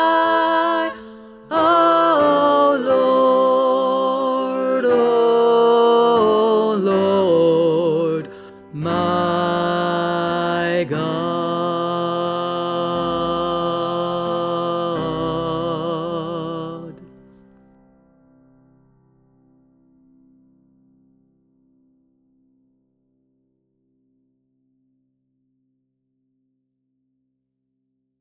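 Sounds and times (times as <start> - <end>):
tenor singing: 0.0 - 17.2.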